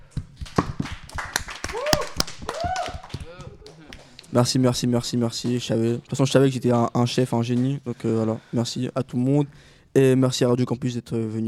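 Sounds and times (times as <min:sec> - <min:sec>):
audience applause: 0:00.5 - 0:04.6
speech: 0:04.4 - 0:11.4.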